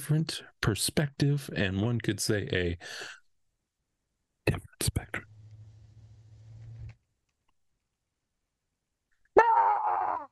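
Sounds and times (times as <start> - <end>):
speech: 0.0 - 3.2, 4.5 - 5.3
person imitating a chicken: 9.4 - 10.3.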